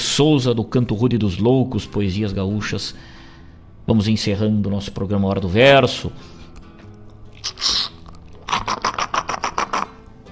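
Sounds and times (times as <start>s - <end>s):
speech: 0.2s - 3.2s, 3.9s - 6.4s
raspy bubbling slurps through a mate straw: 7.2s - 10.2s
mate gourd gurgling as straw drains: 7.3s - 10.1s.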